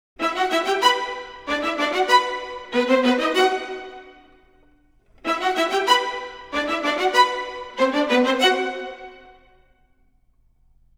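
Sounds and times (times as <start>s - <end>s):
orchestral strings in E minor at 95 bpm: 0.2s - 9.8s.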